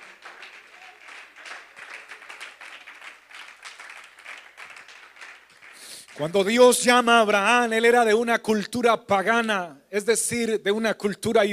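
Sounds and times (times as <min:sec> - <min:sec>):
audience applause: 0:00.0 - 0:06.4
speech: 0:06.2 - 0:11.5.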